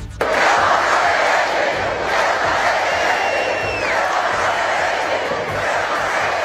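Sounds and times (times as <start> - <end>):
crowd chanting protest slogan in the street: 0.0 - 6.4
whistles: 2.8 - 4.5.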